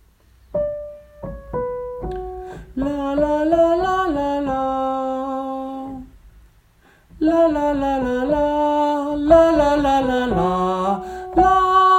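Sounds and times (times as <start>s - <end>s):
soprano singing: 2.6s - 6.1s, 7.2s - 11.9s.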